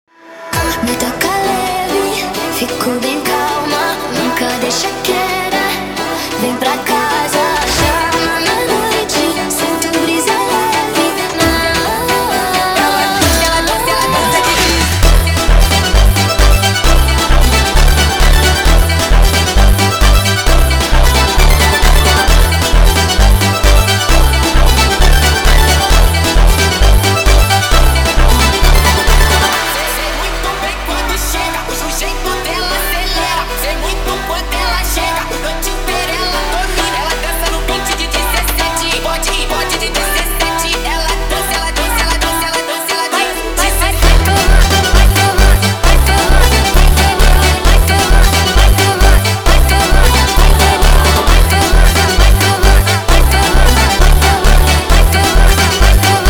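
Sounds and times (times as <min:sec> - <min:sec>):
sped up phonk music: 0:00.5 - 0:56.2.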